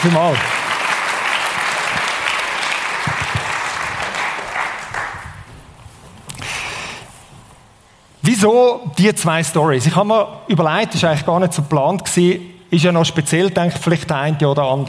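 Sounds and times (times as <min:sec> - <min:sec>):
speech: 0:00.0 - 0:00.6, 0:08.4 - 0:14.8
room full of people applauding: 0:00.0 - 0:05.7.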